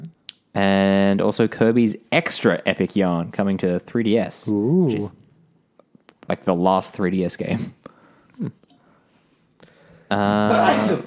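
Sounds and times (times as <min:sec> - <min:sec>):
speech: 0:00.6 - 0:05.2, 0:06.3 - 0:08.6, 0:10.1 - 0:11.0
sneeze: 0:10.5 - 0:11.0.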